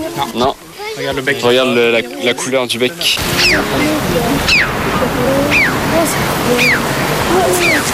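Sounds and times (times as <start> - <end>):
speech: 0.1 - 7.9
red-billed chough call: 3.2 - 7.9.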